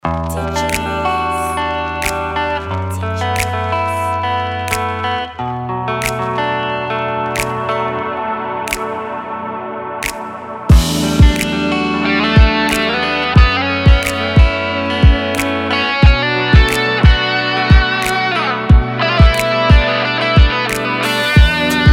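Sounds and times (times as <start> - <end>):
pop guitars: 0.0 - 21.9.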